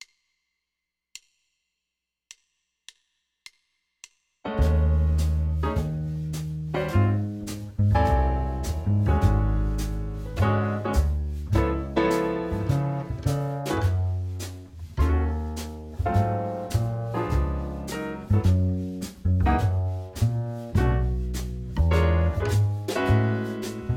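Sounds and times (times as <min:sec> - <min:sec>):
bar jazz: 0:04.5 - 0:23.9.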